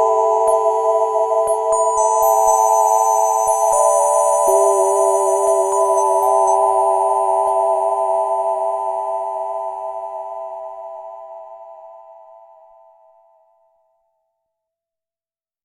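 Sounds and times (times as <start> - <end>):
Ensoniq SQ-80 synthesizer dream pad: 0.0 - 12.0.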